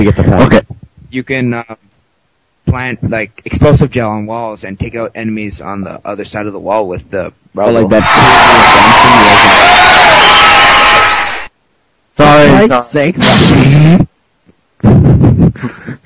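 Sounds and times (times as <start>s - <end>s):
speech: 0.0s - 1.9s, 2.7s - 10.8s, 12.2s - 14.1s, 15.6s - 16.0s
crowd cheering sound effect: 7.9s - 11.5s.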